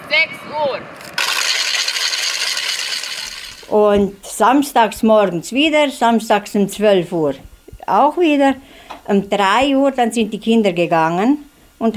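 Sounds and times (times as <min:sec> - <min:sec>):
speech: 0:00.1 - 0:01.3, 0:03.7 - 0:11.9
wooden ratchet rattle cranked instead of bells: 0:01.2 - 0:03.7.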